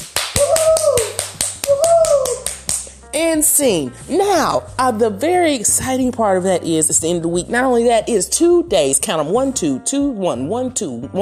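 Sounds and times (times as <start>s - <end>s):
clapping: 0.0s - 2.9s
speech: 3.2s - 11.2s.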